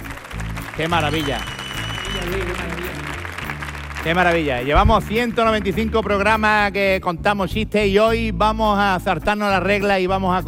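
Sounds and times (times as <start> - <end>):
audience applause: 0.0 - 6.3
speech: 0.8 - 1.6, 2.2 - 3.0, 4.0 - 10.4.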